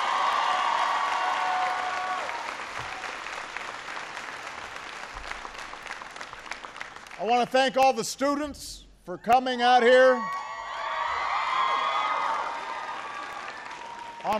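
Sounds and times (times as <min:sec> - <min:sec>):
crowd cheering: 0:00.0 - 0:05.7, 0:09.3 - 0:14.3
crowd applauding: 0:00.0 - 0:07.6, 0:09.9 - 0:14.3
speech: 0:07.2 - 0:10.4.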